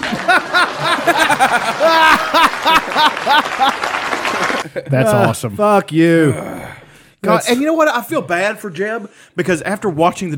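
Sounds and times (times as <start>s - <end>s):
scattered clapping: 0.0s - 4.7s
audience laughing and chuckling: 0.0s - 5.3s
speech: 4.8s - 6.5s, 7.2s - 10.3s.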